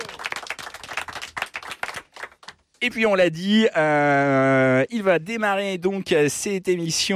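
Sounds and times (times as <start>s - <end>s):
studio audience applause: 0.0s - 2.6s
speech: 2.8s - 7.1s.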